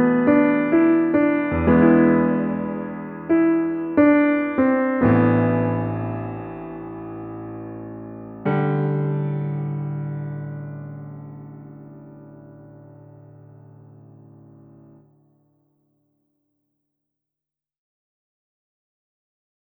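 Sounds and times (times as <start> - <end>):
piano theme: 0.0 - 15.1.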